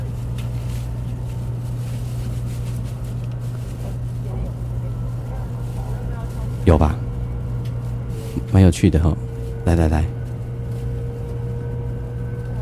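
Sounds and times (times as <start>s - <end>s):
high-speed train motor speeding up: 0.0s - 12.6s
speech: 8.6s - 10.2s.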